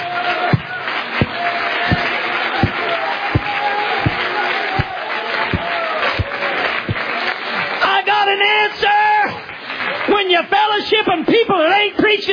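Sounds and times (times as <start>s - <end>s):
crowd noise and murmuring voices: 0.0s - 7.9s
audience clapping hands in a steady beat: 0.0s - 12.2s.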